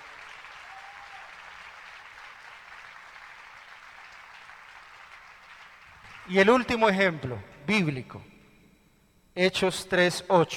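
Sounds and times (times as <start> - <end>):
audience applauding: 0.0 - 6.6
speech: 6.3 - 8.3, 9.4 - 10.5.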